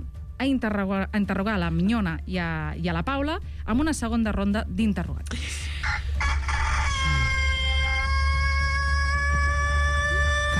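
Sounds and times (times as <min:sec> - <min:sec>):
speech: 0:00.4 - 0:06.0
rooster crowing: 0:05.8 - 0:10.5.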